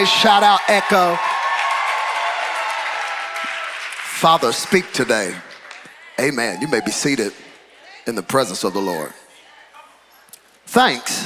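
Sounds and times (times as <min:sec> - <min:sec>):
speech: 0:00.0 - 0:01.3, 0:04.2 - 0:05.5, 0:06.2 - 0:07.4, 0:08.0 - 0:09.2, 0:10.7 - 0:11.2
audience clapping: 0:00.0 - 0:06.4.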